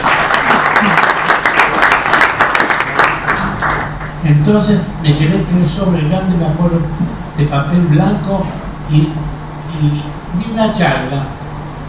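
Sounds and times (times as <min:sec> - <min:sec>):
audience applause: 0:00.0 - 0:04.2
speech: 0:04.3 - 0:11.4.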